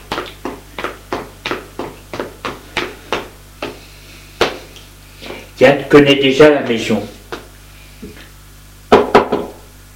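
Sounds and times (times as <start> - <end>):
speech: 5.6 - 7.1
knocking on a wooden door: 8.9 - 9.6.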